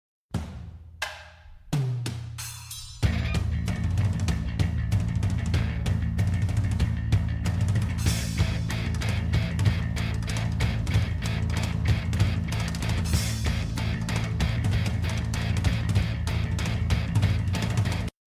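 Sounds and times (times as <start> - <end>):
tension music: 1.5 - 18.1.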